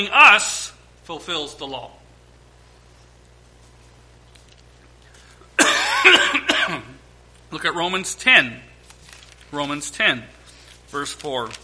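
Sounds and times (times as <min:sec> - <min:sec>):
speech: 0:00.0 - 0:02.0, 0:07.5 - 0:08.7, 0:09.5 - 0:11.6
man preaching a sermon coughing: 0:05.5 - 0:07.0.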